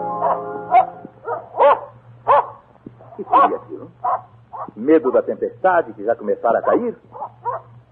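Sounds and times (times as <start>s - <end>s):
dog barking furiously: 0.2s - 2.7s, 3.3s - 4.8s, 6.6s - 7.8s
speech: 3.2s - 7.2s.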